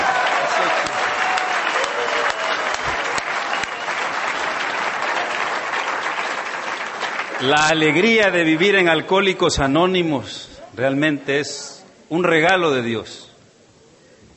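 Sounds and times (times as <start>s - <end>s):
applause: 0.0s - 8.7s
speech: 7.4s - 13.3s.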